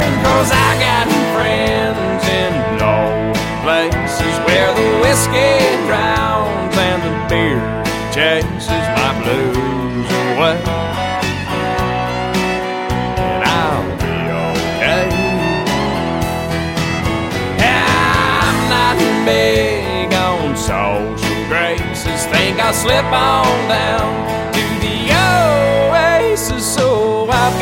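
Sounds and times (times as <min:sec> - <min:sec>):
country music: 0:00.0 - 0:27.6.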